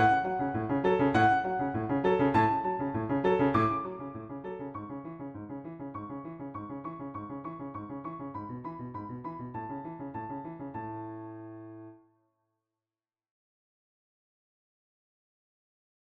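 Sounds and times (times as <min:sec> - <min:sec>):
piano: 0:00.0 - 0:12.1.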